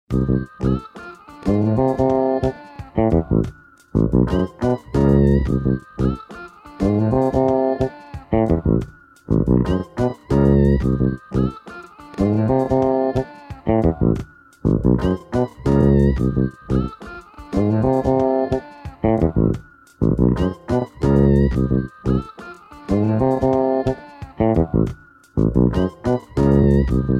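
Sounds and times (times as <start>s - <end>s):
music track at 90 bpm: 0.1s - 27.1s.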